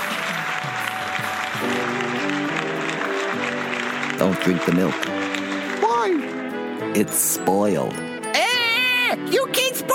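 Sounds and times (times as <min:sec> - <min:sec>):
audience applause: 0:00.0 - 0:06.5
speech: 0:04.2 - 0:05.3, 0:07.0 - 0:08.1, 0:09.2 - 0:09.9.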